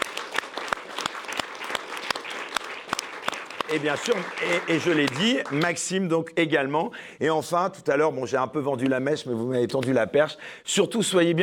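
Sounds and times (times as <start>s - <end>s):
audience clapping: 0.0s - 6.2s
speech: 3.7s - 11.4s.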